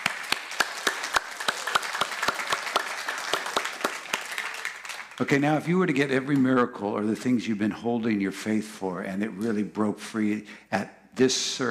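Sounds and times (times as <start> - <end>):
audience applause: 0.0 - 5.4
speech: 5.2 - 11.6.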